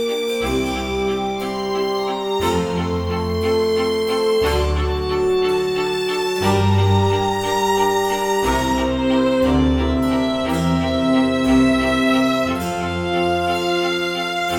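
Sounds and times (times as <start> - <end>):
Baroque style violin concerto: 0.0 - 14.5.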